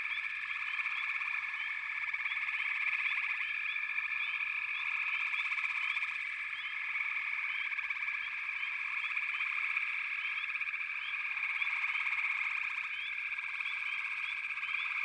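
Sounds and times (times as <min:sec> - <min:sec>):
frogs in chorus trilling: 0:00.0 - 0:15.0.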